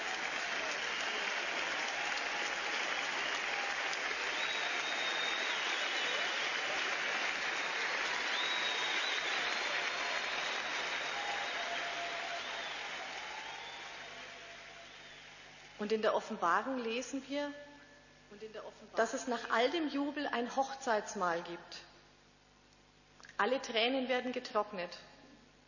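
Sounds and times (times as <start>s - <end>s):
audience applause: 0.0s - 15.7s
speech: 15.8s - 17.7s, 18.3s - 21.9s, 23.4s - 25.1s.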